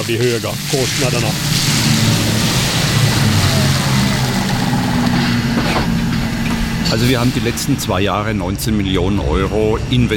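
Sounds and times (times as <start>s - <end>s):
speech: 0.0s - 1.8s, 6.9s - 10.1s
electric tractor truck rolling in with low drone and faint whine: 0.0s - 10.1s.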